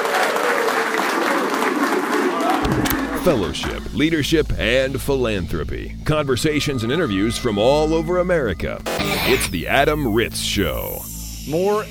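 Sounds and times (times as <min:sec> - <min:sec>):
audience round of applause: 0:00.0 - 0:02.5
speech: 0:03.2 - 0:11.8.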